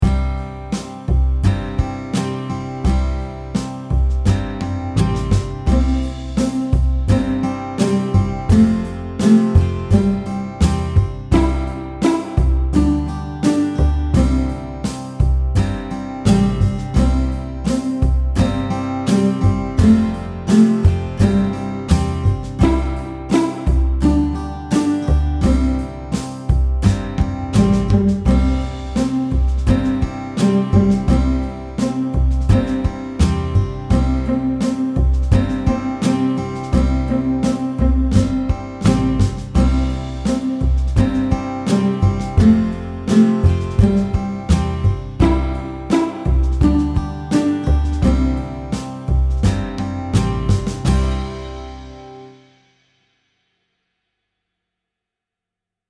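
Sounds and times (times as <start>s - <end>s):
slow ukulele nursery rhyme: 0.0s - 52.4s.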